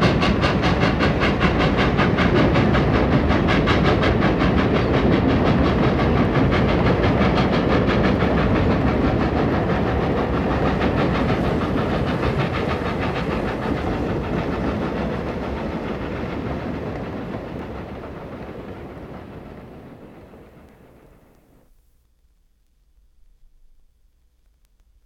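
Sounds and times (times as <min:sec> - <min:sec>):
steam locomotive: 0:00.0 - 0:21.8.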